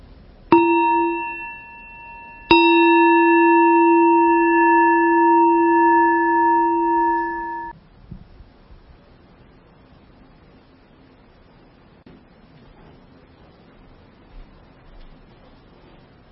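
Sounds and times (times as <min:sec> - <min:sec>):
meditation bell ringing: 0:00.5 - 0:07.7.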